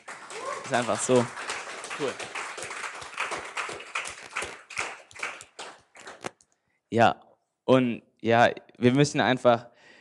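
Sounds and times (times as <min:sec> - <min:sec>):
audience applause: 0:00.0 - 0:06.3
speech: 0:00.7 - 0:01.4, 0:02.0 - 0:02.3, 0:06.9 - 0:09.7.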